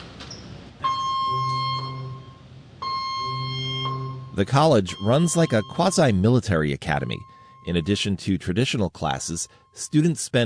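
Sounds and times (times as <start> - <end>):
ship's abandon-ship drill alarm blaring: 0.8 - 10.4
speech: 4.4 - 10.4.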